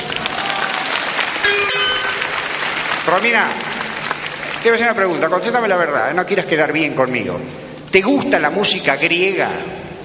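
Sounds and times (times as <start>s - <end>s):
audience applause: 0.0s - 5.3s
speech: 3.1s - 3.7s, 4.6s - 9.8s.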